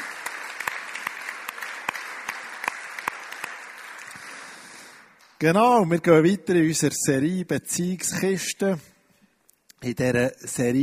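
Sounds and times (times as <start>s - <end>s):
audience applause: 0.0s - 5.0s
speech: 5.4s - 8.9s, 9.8s - 10.8s.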